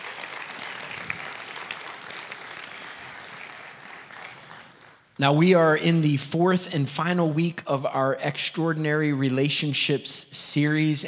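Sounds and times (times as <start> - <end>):
church congregation applauding to welcome online viewers: 0.0 - 5.2
speech: 5.2 - 11.0.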